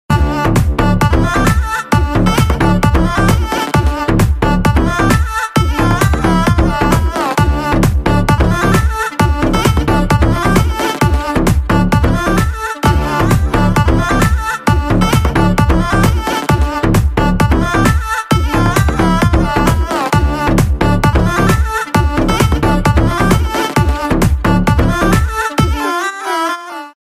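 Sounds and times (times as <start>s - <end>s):
background music ringtone: 0.1s - 27.0s.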